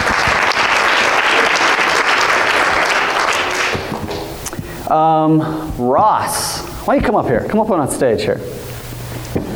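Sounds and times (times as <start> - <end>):
audience applause: 0.0 - 4.9
speech: 4.9 - 8.5.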